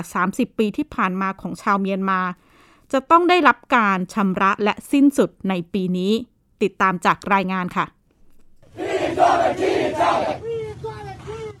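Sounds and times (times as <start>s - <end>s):
speech: 0.0s - 8.0s
Myanmar protesters shouting slogans: 8.7s - 11.5s.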